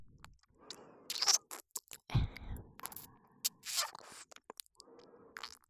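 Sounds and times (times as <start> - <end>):
ASMR ear licking in right ear: 1.1 - 1.7, 2.8 - 4.4.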